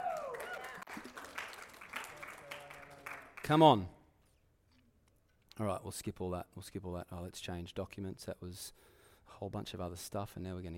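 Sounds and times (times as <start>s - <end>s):
audience clapping: 0.0s - 3.8s
speech: 3.5s - 4.0s, 5.6s - 10.7s.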